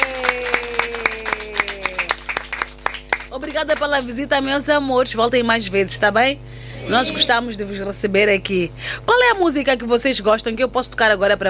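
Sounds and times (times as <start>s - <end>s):
children applauding: 0.0s - 3.3s
speech: 3.6s - 11.4s.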